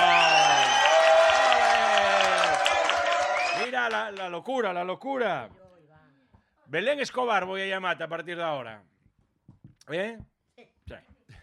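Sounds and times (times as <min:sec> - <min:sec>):
audience applause: 0:00.0 - 0:04.4
speech: 0:03.9 - 0:05.6, 0:06.7 - 0:08.9, 0:09.9 - 0:10.3, 0:10.9 - 0:11.1.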